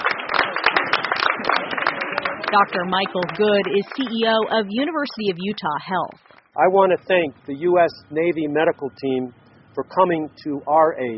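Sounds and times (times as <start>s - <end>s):
group applause sending off a U.S. Navy medical surge team in Salt Lake City: 0.0s - 5.0s
speech: 2.5s - 11.1s.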